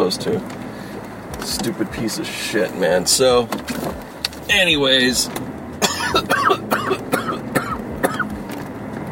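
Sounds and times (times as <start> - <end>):
speech: 0.1 - 0.6, 1.4 - 7.1
person coughing: 5.8 - 8.3.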